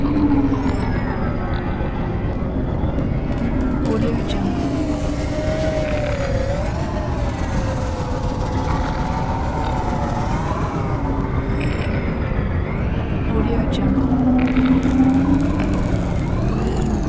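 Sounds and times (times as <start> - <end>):
sci-fi ambience: 0.0 - 17.0.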